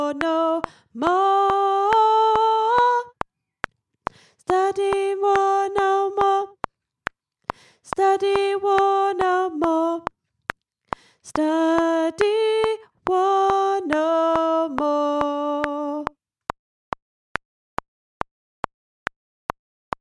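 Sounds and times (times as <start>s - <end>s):
alto voice singing: 0.0s - 3.2s, 4.5s - 6.7s, 7.9s - 10.1s, 11.3s - 16.2s.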